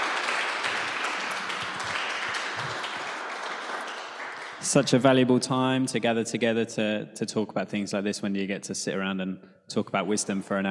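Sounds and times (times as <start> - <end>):
audience applause: 0.0 - 5.1
speech: 4.6 - 10.6.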